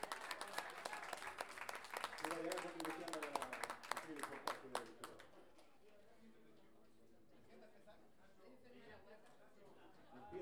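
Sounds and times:
audience applause: 0.0s - 4.9s
speech: 2.3s - 3.3s, 4.1s - 5.2s.

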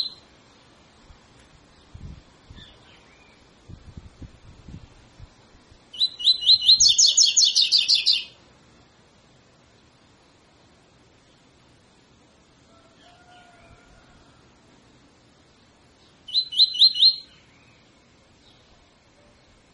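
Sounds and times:
double-collared seedeater tutor song: 0.0s - 0.2s, 1.8s - 3.5s, 5.9s - 8.4s, 16.0s - 19.5s.

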